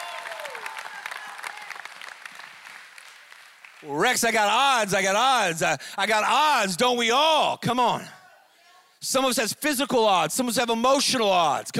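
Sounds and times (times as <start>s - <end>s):
audience clapping: 0.0s - 4.6s
speech: 3.8s - 8.2s, 9.0s - 11.7s.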